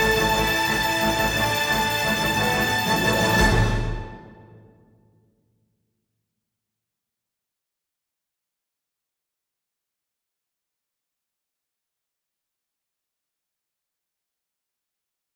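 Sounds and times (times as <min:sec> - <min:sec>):
fanfare: 0:00.0 - 0:04.8.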